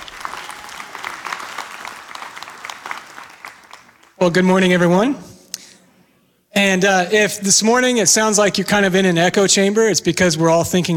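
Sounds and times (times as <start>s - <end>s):
audience applauding: 0.0s - 4.2s
speech: 4.2s - 5.3s, 6.6s - 10.9s.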